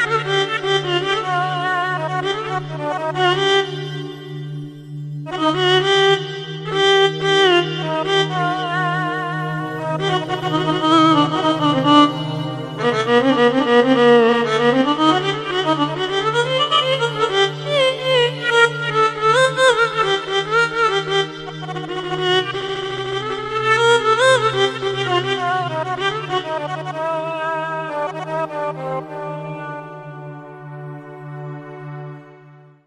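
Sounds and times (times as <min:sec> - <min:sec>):
kanun and violin solo on a keyboard arranger: 0:00.0 - 0:32.7.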